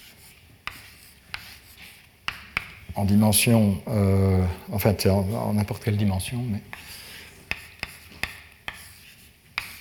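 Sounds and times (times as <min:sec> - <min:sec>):
writing strokes while writing out Einstein's equations during a lecture: 0:00.0 - 0:02.8, 0:06.7 - 0:09.7
speech: 0:03.0 - 0:06.8.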